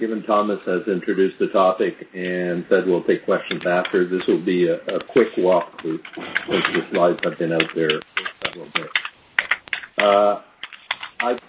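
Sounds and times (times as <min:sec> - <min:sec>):
speech: 0:00.0 - 0:09.0, 0:10.0 - 0:10.5, 0:11.2 - 0:11.4
keyboard typing during an online conference call: 0:03.5 - 0:11.4.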